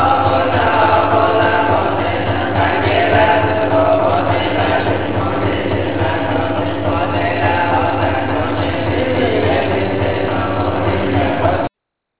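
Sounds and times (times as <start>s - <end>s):
monk chanting: 0.0s - 11.7s.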